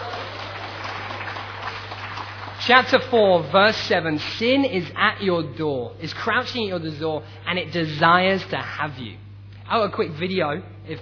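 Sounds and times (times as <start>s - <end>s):
audience applause: 0.0s - 3.2s
speech: 2.6s - 11.0s.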